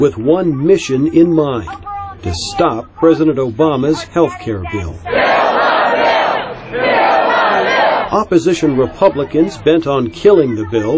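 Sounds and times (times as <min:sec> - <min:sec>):
speech: 0:00.0 - 0:05.4, 0:08.1 - 0:10.9
large crowd of protesters cheering at a Capitol Hill rally in Washington: 0:05.1 - 0:09.3.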